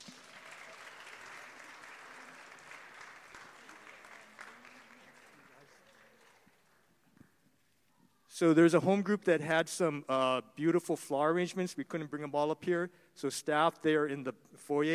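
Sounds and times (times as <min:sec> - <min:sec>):
audience applauding: 0:00.0 - 0:07.4
speech: 0:08.4 - 0:14.9.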